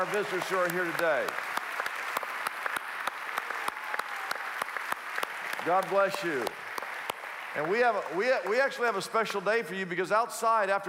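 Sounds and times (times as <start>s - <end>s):
speech: 0.0s - 1.5s, 5.6s - 6.6s, 7.6s - 10.8s
audience applauding for guests: 0.0s - 9.4s.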